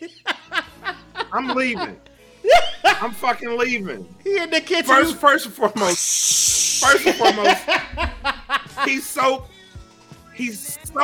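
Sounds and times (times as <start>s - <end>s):
speech: 0.0s - 0.3s, 1.3s - 9.5s, 10.4s - 11.0s
laughter: 0.0s - 4.5s, 6.8s - 9.2s
voice imitating liquid sizzling in a skillet: 5.8s - 7.4s.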